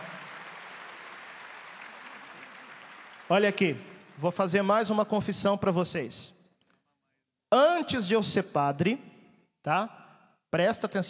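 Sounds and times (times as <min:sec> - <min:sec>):
audience applause: 0:00.0 - 0:04.3
speech: 0:03.3 - 0:06.4, 0:07.5 - 0:11.0.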